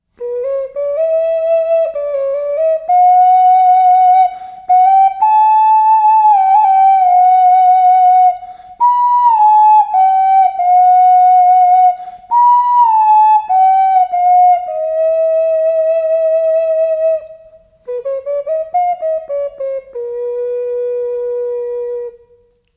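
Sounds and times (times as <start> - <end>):
ocarina: 0.0 - 22.7.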